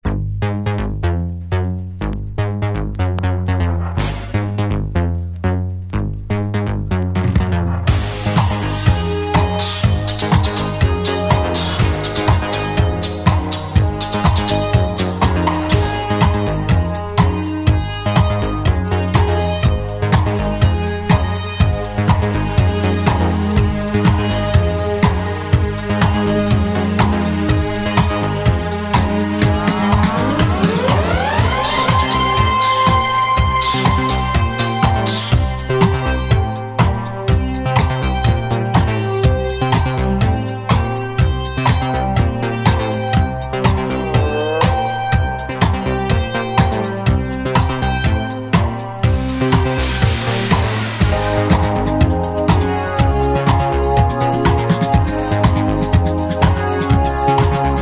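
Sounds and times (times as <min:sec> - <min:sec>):
instrumental disco music: 0:00.1 - 0:57.8.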